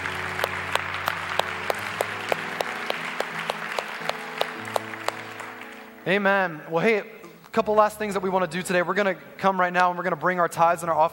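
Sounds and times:
church congregation clapping during a service: 0.0 - 6.7
speech: 6.0 - 11.1.

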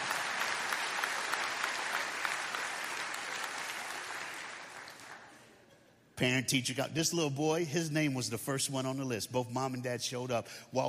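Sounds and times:
audience clapping hands: 0.0 - 5.4
speech: 6.2 - 10.8.

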